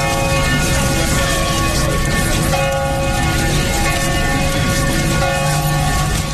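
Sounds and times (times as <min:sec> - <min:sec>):
church bell ringing in Debrecen: 0:00.0 - 0:06.3.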